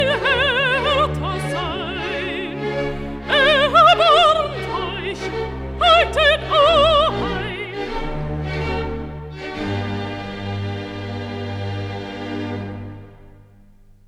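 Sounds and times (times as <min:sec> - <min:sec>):
alto singing recitative: 0:00.0 - 0:09.7.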